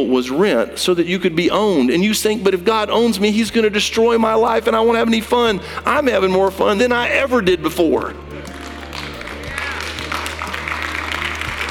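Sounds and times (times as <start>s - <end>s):
speech: 0.0s - 8.3s
audience golf clap: 8.2s - 11.6s.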